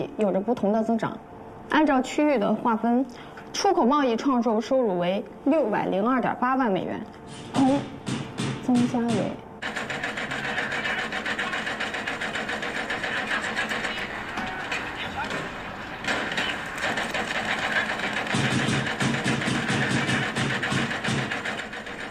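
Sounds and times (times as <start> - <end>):
speech: 0.0 - 9.4
renovation construction noise: 7.2 - 22.0.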